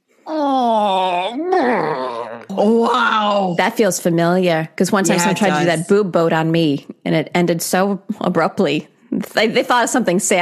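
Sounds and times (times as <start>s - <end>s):
person imitating a disappointed wah-wah sound: 0.3s - 3.6s
speech: 2.6s - 10.4s.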